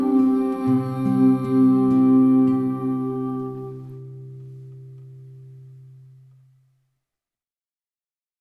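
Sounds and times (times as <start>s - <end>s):
children's song: 0.0s - 4.0s.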